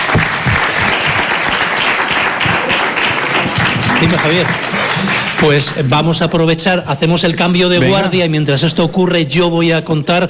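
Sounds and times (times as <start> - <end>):
applause: 0.0 - 6.1
speech: 4.0 - 4.8, 5.4 - 10.2.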